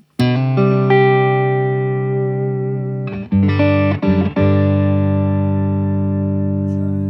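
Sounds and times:
electric guitar chord through effects pedalboard with tremolo: 0.2s - 7.0s.

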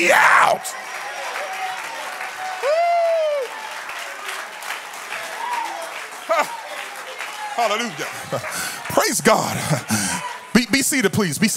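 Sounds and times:
speech: 0.0s - 1.0s, 7.6s - 10.0s, 10.8s - 11.5s
audience clapping hands: 0.0s - 11.5s
laughter: 6.2s - 6.7s, 7.6s - 10.8s.

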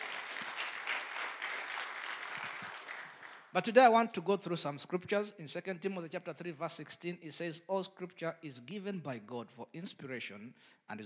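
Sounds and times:
audience clapping hands: 0.0s - 3.6s
speech: 3.6s - 11.0s.

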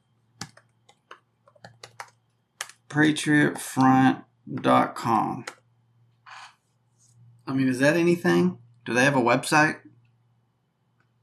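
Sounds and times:
typing on a computer keyboard: 0.4s - 2.9s
speech: 2.9s - 5.6s, 7.5s - 9.9s.

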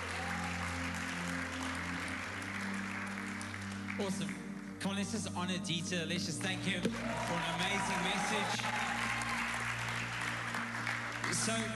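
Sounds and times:
round of applause: 0.0s - 4.8s, 6.9s - 11.7s
speech: 4.0s - 8.8s, 11.4s - 11.7s.

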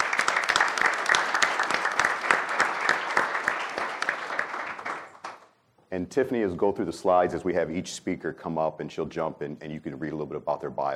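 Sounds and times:
audience applause: 0.0s - 5.5s
speech: 5.9s - 10.9s.

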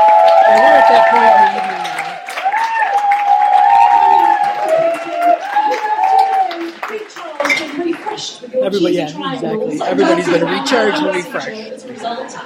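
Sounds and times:
audience applauding at an arts and culture event: 0.0s - 8.9s
speech: 0.5s - 1.7s, 8.7s - 12.4s.

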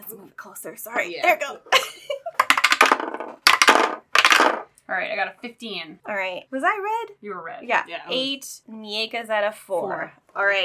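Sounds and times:
speech: 0.3s - 2.2s, 4.9s - 10.6s
dice rolling across a table in a tabletop role-playing game: 2.4s - 4.7s.

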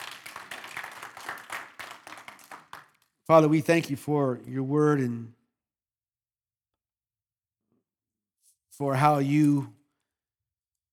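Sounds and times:
audience clapping: 0.0s - 3.6s
speech: 3.3s - 5.4s, 8.8s - 9.8s.

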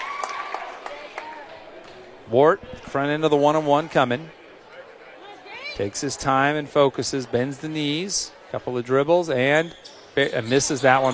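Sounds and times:
fans applauding a substituted player: 0.0s - 2.1s
speech: 2.3s - 4.4s, 5.8s - 11.1s.

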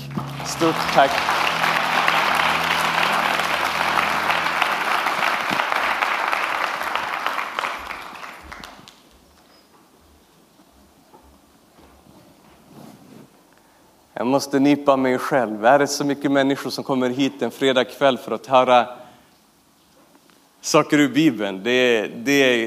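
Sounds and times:
audience applause: 0.0s - 9.1s
speech: 0.4s - 1.4s, 14.4s - 19.0s, 20.7s - 22.6s.

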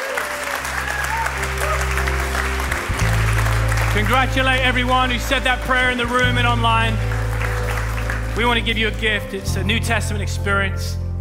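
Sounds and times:
people clapping in a church service after a group prayer: 0.0s - 9.4s
sustained low musical chords: 1.3s - 11.2s
speech: 4.0s - 7.1s, 8.4s - 11.0s.

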